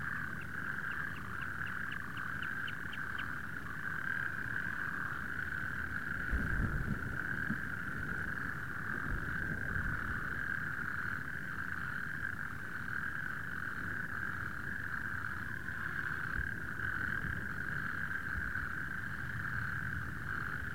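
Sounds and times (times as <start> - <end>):
natterjack toads calling in a continuous rattling trill: 0.0 - 6.4, 7.2 - 20.7.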